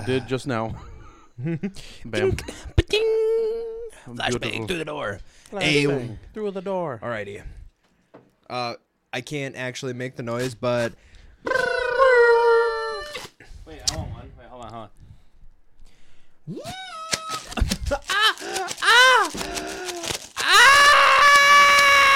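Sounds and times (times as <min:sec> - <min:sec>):
speech: 0:00.0 - 0:03.1, 0:04.0 - 0:07.6, 0:08.5 - 0:11.7, 0:16.5 - 0:16.9
person screaming: 0:11.5 - 0:13.3, 0:16.5 - 0:22.1
party blowers blown: 0:16.6 - 0:22.1.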